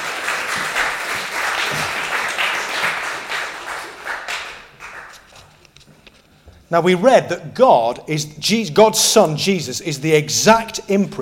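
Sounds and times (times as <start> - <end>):
crowd applause: 0.0 - 5.5
speech: 6.7 - 11.1.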